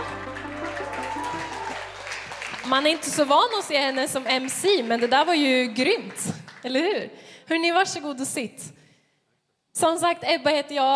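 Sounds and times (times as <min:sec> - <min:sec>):
audience applause: 0:00.0 - 0:06.7
speech: 0:02.7 - 0:08.8, 0:09.8 - 0:10.9.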